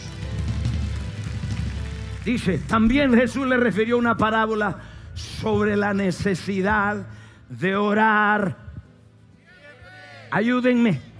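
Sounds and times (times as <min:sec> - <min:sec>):
audience applause: 0:00.0 - 0:03.2
speech: 0:02.3 - 0:08.6, 0:10.3 - 0:11.1.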